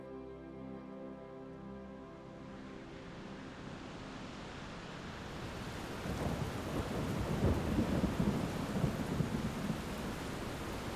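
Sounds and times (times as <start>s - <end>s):
heavy rain on the place Saint-Étienne: 2.2s - 10.9s
thunderclaps: 5.9s - 10.9s.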